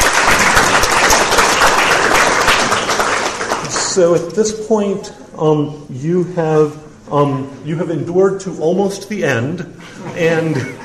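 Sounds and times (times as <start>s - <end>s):
audience applause: 0.0s - 4.0s
speech: 4.0s - 10.8s
laughter: 9.8s - 10.8s.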